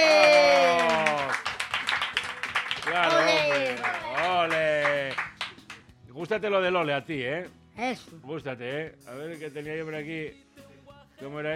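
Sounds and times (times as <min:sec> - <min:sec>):
applause: 0:00.0 - 0:05.9
speech: 0:06.3 - 0:10.5, 0:11.2 - 0:11.5.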